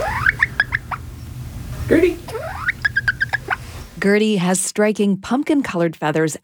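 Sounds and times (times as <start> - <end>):
bantam hen making little peeping sounds: 0.0 - 4.0
low rumble: 0.0 - 4.1
speech: 1.9 - 2.6, 4.0 - 6.4.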